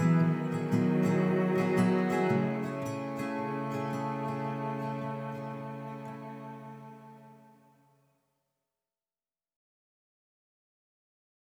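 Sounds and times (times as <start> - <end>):
instrumental music: 0.0 - 7.9.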